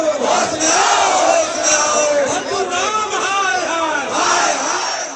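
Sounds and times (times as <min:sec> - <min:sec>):
protesters chanting slogans at a sit-in at BJP headquarters in Patna: 0:00.2 - 0:02.9, 0:03.9 - 0:05.1.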